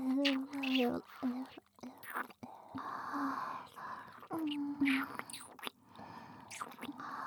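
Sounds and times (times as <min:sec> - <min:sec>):
tongue kissing: 0:00.2 - 0:02.3, 0:04.2 - 0:05.7, 0:06.5 - 0:07.0.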